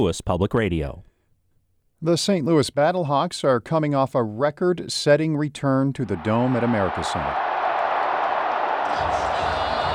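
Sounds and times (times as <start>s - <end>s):
speech: 0.0s - 1.1s, 2.0s - 7.5s
stadium crowd cheering: 6.0s - 9.9s.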